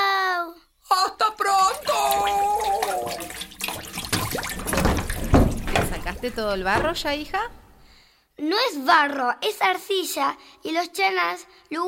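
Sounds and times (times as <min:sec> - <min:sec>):
running water: 0:01.3 - 0:08.0
speech: 0:06.2 - 0:07.6, 0:08.4 - 0:11.8.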